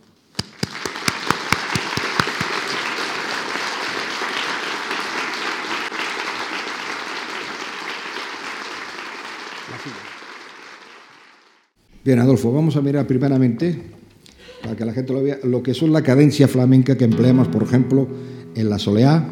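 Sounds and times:
audience applause welcoming a guitarist: 0:00.4 - 0:11.7
speech: 0:12.1 - 0:14.0, 0:14.7 - 0:19.3.

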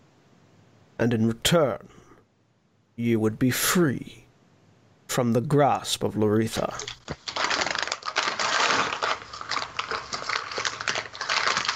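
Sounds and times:
speech: 0:01.0 - 0:02.0, 0:03.0 - 0:04.2, 0:05.2 - 0:07.3
food box crumpling: 0:06.8 - 0:11.7.

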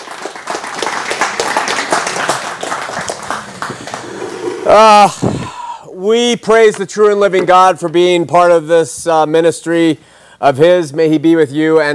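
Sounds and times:
audience applause: 0:00.0 - 0:04.8
speech: 0:04.7 - 0:05.4, 0:06.0 - 0:11.9.

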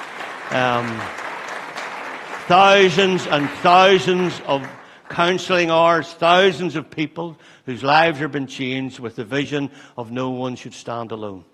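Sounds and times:
audience applause: 0:00.0 - 0:06.0
speech: 0:00.5 - 0:01.2, 0:02.5 - 0:11.5.

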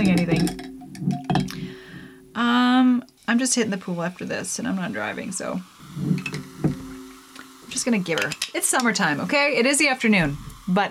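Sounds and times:
steady ringing tone: 0:00.0 - 0:02.5, 0:05.9 - 0:08.0
louder harmonic-rich sound: 0:00.0 - 0:10.8
speech: 0:03.4 - 0:05.8, 0:07.8 - 0:10.8
liquid pouring into a glass: 0:05.6 - 0:07.8.

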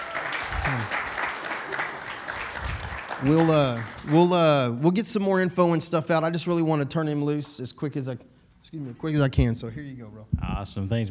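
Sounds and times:
audience hand clapping: 0:00.0 - 0:04.7
speech: 0:03.2 - 0:11.0.

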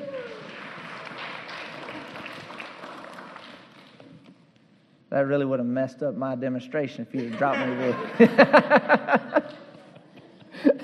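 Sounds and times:
audience hand clapping: 0:00.0 - 0:04.4
speech: 0:05.1 - 0:09.6
laughter: 0:07.2 - 0:10.8.

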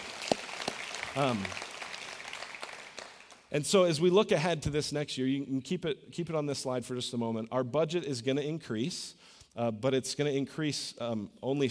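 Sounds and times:
audience applause: 0:00.0 - 0:03.5
speech: 0:01.2 - 0:01.6, 0:03.5 - 0:11.6.

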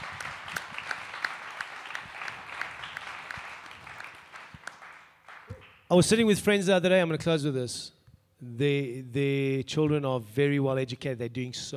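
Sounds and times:
audience applause: 0:00.0 - 0:05.7
speech: 0:05.9 - 0:11.7.

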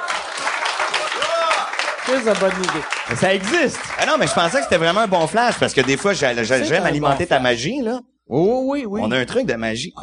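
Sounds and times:
applause: 0:00.0 - 0:06.3
speech: 0:02.1 - 0:10.0.

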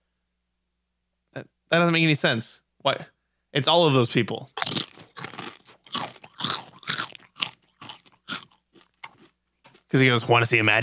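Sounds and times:
speech: 0:01.4 - 0:04.7, 0:09.9 - 0:10.8
chips being chewed: 0:04.5 - 0:10.0.

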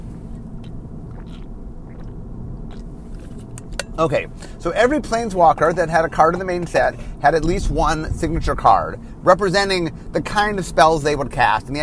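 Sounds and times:
person taking a drink: 0:00.3 - 0:03.8
speech: 0:04.0 - 0:11.8.

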